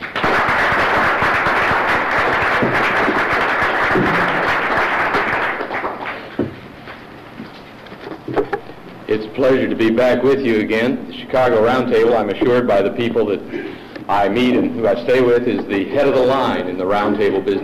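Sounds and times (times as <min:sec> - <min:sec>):
audience applause welcoming a speaker at a Chicago Civil War roundtable lecture: 0:00.0 - 0:06.4
speech: 0:09.4 - 0:17.6.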